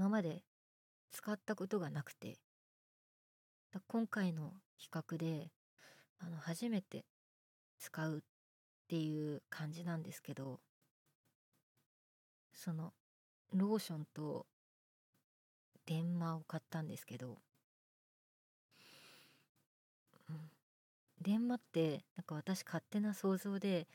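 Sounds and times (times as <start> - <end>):
boyish new female voice actress performing: 0.0 - 0.5, 1.2 - 2.4, 3.8 - 5.5, 6.2 - 7.1, 7.8 - 8.3, 8.9 - 10.6, 12.6 - 14.5, 15.9 - 17.4, 21.2 - 23.9.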